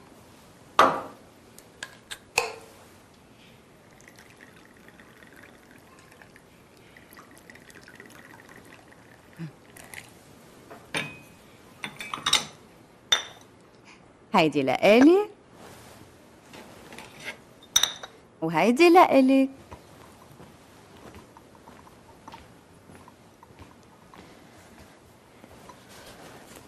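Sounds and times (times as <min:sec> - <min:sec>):
tea trickling into a cup: 0:03.8 - 0:10.2
cups and crockery clinking: 0:03.9 - 0:10.1, 0:10.9 - 0:13.5, 0:17.7 - 0:18.2
speech: 0:14.4 - 0:15.3, 0:18.5 - 0:19.6.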